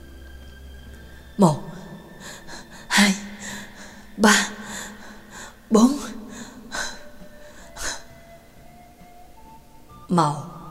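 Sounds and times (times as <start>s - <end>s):
speech: 1.4s - 1.7s, 3.0s - 3.2s, 4.2s - 4.5s, 5.7s - 6.0s, 10.2s - 10.5s
heavy rapid panting breaths: 2.1s - 8.2s.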